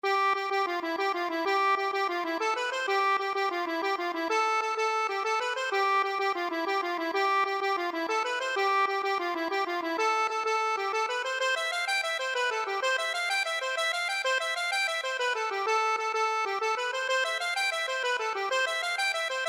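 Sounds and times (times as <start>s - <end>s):
accordion: 0.0s - 19.4s.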